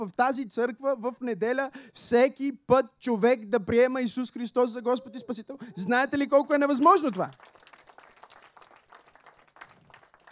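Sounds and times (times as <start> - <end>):
speech: 0.0 - 7.6
weak, tired audience clapping: 6.9 - 10.3.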